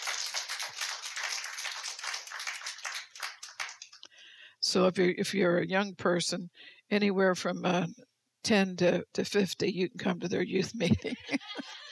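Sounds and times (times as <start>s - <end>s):
audience clapping: 0.0s - 4.0s
speech: 4.7s - 11.5s
laughter: 10.8s - 11.9s.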